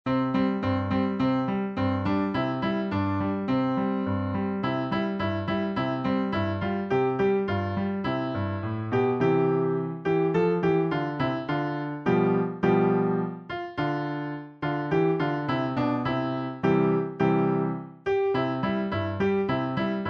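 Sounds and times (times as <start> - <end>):
instrumental music: 0.1 - 20.0.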